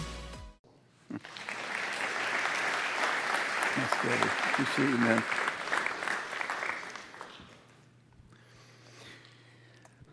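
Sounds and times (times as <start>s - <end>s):
audience clapping: 1.1s - 7.9s.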